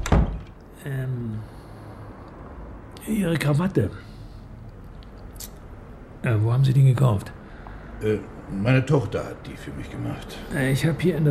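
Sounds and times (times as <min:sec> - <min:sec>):
door shutting thud: 0:00.0 - 0:00.6
speech: 0:00.8 - 0:01.6, 0:03.1 - 0:04.2, 0:06.2 - 0:07.4, 0:08.0 - 0:11.2.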